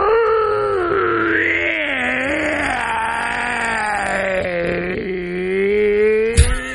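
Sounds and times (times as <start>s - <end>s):
person imitating hoarse wolf-like howl: 0.0s - 6.7s
sharp click: 6.3s - 6.7s.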